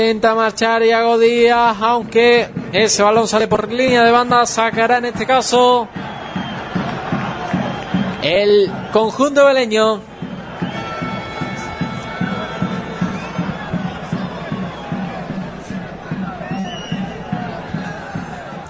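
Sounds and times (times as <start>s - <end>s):
speech: 0.0s - 6.1s, 8.2s - 10.1s
football crowd shouting: 3.9s - 18.6s.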